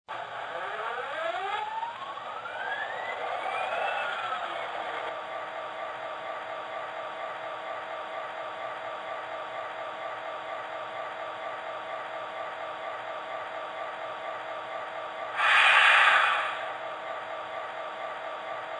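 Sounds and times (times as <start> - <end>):
F40PH diesel locomotive train: 0.1 - 18.7.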